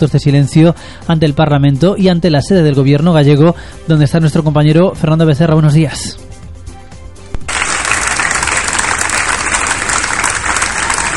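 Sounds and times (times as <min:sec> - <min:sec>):
speech: 0:00.0 - 0:06.2
applause at the gates of the Xunta headquarters: 0:07.4 - 0:11.1.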